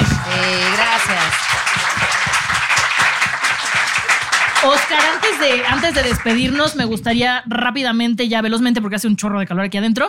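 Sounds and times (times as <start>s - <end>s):
audience applause: 0.0s - 6.8s
speech: 4.7s - 10.0s.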